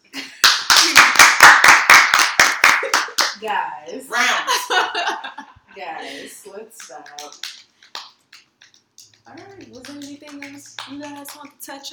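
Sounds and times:
single person clapping hands: 0:00.4 - 0:03.4, 0:06.8 - 0:11.9
speech: 0:09.3 - 0:11.9.

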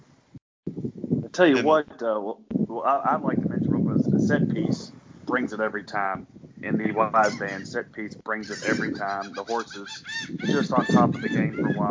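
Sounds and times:
speech: 0:01.4 - 0:03.6, 0:04.2 - 0:11.8
seagull squawking at a horse racetrack: 0:07.2 - 0:07.7, 0:08.5 - 0:11.8.

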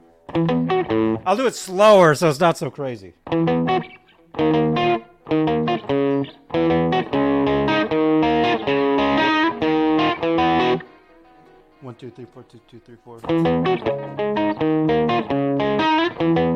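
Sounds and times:
two distorted electric guitar riffs playing together: 0:00.2 - 0:01.4, 0:03.2 - 0:11.8, 0:13.2 - 0:16.5
speech: 0:00.3 - 0:04.7, 0:12.0 - 0:15.4.

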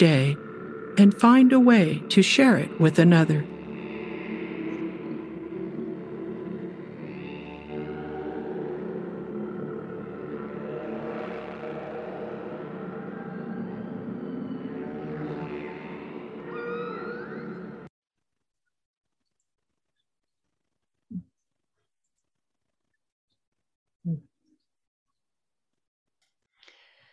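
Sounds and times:
speech: 0:00.0 - 0:00.4, 0:01.0 - 0:03.5
whale song: 0:02.5 - 0:17.9.

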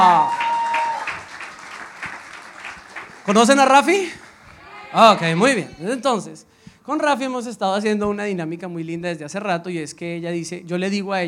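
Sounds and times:
audience applause: 0:00.0 - 0:05.9
speech: 0:03.3 - 0:04.3, 0:04.9 - 0:11.2.

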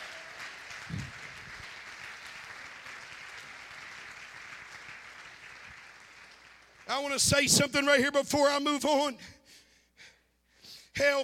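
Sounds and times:
audience clapping hands: 0:00.0 - 0:07.3
speech: 0:06.9 - 0:09.4, 0:11.0 - 0:11.2.

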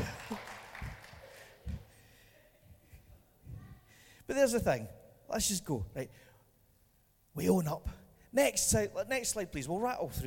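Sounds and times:
audience applause: 0:00.0 - 0:01.7
speech: 0:04.3 - 0:06.3, 0:07.4 - 0:10.2.

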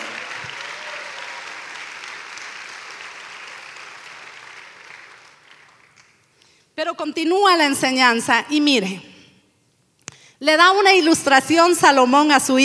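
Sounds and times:
audience applause: 0:00.0 - 0:06.2
speech: 0:06.8 - 0:09.1, 0:10.4 - 0:12.6.

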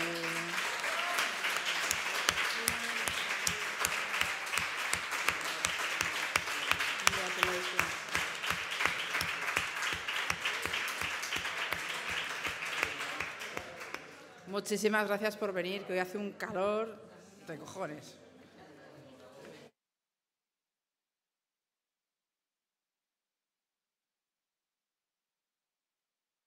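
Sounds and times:
audience applause: 0:00.0 - 0:14.3
speech: 0:14.6 - 0:18.2.

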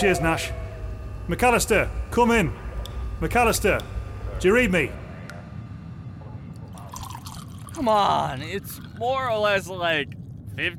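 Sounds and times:
speech: 0:00.0 - 0:00.6, 0:01.3 - 0:02.6, 0:03.2 - 0:05.0, 0:07.8 - 0:10.7
low rumbling hum: 0:00.0 - 0:10.7
dripping condensation: 0:06.7 - 0:10.7.

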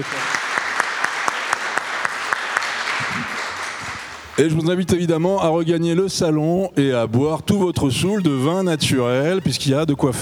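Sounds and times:
speech: 0:00.0 - 0:00.4, 0:04.4 - 0:10.2
audience applause: 0:00.0 - 0:04.5.

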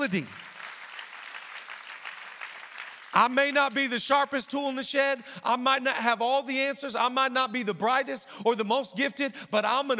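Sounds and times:
speech: 0:00.0 - 0:00.5, 0:03.2 - 0:09.9
crowd clapping: 0:00.0 - 0:04.0.

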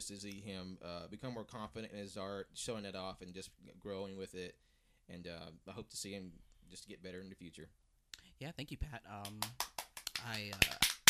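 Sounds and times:
speech: 0:00.0 - 0:07.8, 0:08.4 - 0:10.9
hand clap: 0:09.2 - 0:11.0.

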